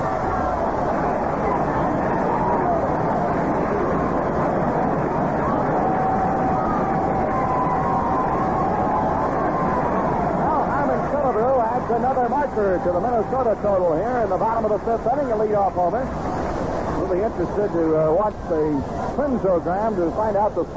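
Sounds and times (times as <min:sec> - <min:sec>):
stadium crowd cheering a home run: 0:00.0 - 0:20.7
speech: 0:12.7 - 0:16.3, 0:17.0 - 0:20.7.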